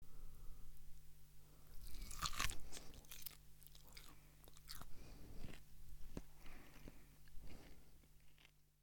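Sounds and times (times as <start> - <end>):
biting into meat: 1.8 - 5.6
chewing: 1.8 - 8.6.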